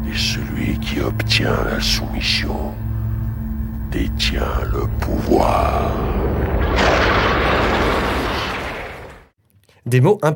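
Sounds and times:
speech: 0.1s - 2.8s, 3.9s - 6.2s, 9.8s - 10.3s
thunder crash in film scene: 5.0s - 9.3s.

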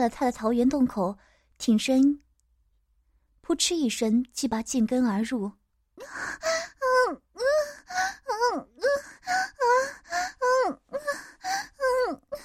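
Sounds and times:
speech: 0.0s - 2.2s, 3.5s - 10.0s
woman moaning with pleasure: 6.0s - 12.4s.

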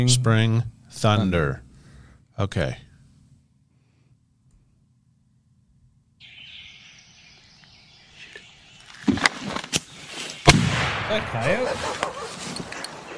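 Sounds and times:
speech: 0.0s - 1.6s, 2.4s - 2.8s, 11.1s - 12.1s
birds chirping: 6.2s - 13.1s
gunshot at coyote in turkey setup: 10.4s - 11.7s.

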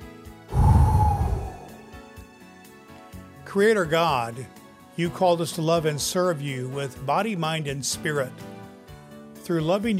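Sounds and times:
deep breath drawn in before a breath prayer: 0.5s - 1.9s
speech: 3.6s - 8.6s, 9.5s - 9.9s.

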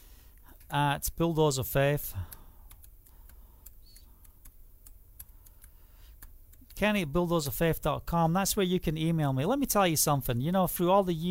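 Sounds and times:
low hiss: 0.0s - 11.2s
speech: 0.7s - 2.4s, 6.8s - 11.2s
typing an email address on a computer keyboard: 2.2s - 6.8s.

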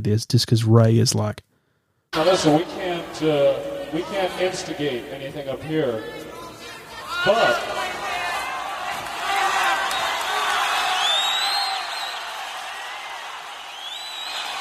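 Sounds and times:
speech: 0.0s - 1.5s, 2.1s - 6.3s, 7.2s - 7.8s
concert crowd cheering for an encore: 2.2s - 14.6s
shrill whistles and whoops from concert crowd: 7.0s - 14.6s.

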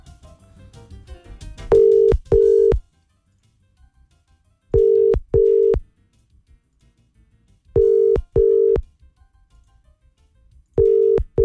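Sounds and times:
telephone ringback tone of an unanswered call: 1.7s - 2.8s, 4.8s - 5.8s, 7.8s - 8.8s, 10.8s - 11.4s.

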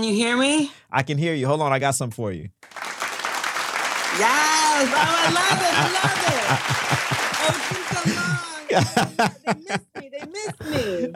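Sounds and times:
speech: 0.0s - 2.8s, 4.1s - 11.1s
applause sound effect of crowd clapping: 2.6s - 9.4s
voices laughing: 4.2s - 11.1s.

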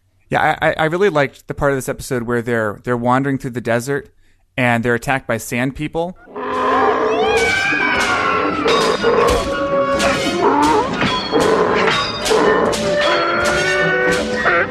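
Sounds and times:
speech: 0.3s - 6.4s, 8.6s - 9.6s
human voice imitating a krayt dragon call to scare off sand people: 6.3s - 14.6s.

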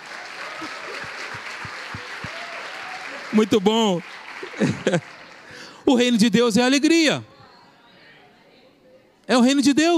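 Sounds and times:
audience applause: 0.0s - 6.1s
laughter: 0.3s - 3.5s, 4.3s - 5.7s
speech: 3.3s - 5.1s, 5.9s - 7.3s, 9.3s - 9.9s.

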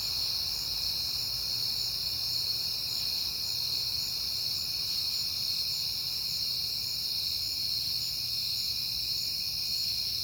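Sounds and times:
many crickets chirping: 0.0s - 10.2s.

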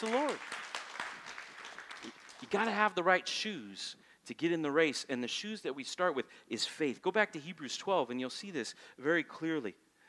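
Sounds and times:
speech: 0.0s - 0.6s, 2.0s - 9.8s
audience applause: 0.0s - 2.8s.

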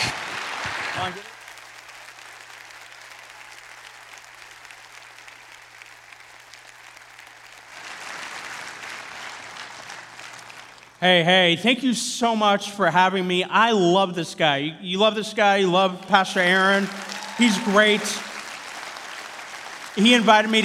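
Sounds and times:
church audience at Traders Point applauding to welcome a guest speaker: 0.0s - 11.0s, 15.5s - 20.6s
speech: 1.0s - 1.4s, 11.0s - 18.3s, 20.0s - 20.6s.

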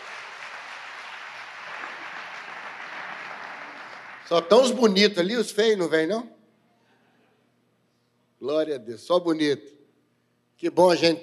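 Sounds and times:
audience applause: 0.0s - 5.0s
speech: 4.3s - 6.4s, 8.5s - 9.8s, 10.6s - 11.2s.

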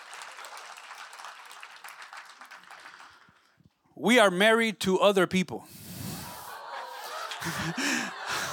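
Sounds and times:
audience clapping: 0.0s - 3.8s, 7.0s - 8.5s
speech: 4.0s - 5.8s, 7.4s - 8.2s
laughter: 6.1s - 8.5s.

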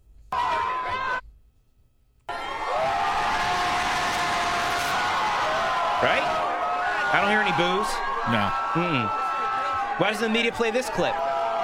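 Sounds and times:
crowd cheering and chanting outdoors: 2.3s - 11.6s
speech: 7.2s - 9.2s, 10.0s - 11.2s.

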